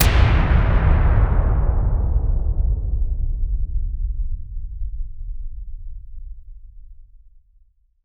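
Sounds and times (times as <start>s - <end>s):
impact hits and booms: 0.0s - 5.6s.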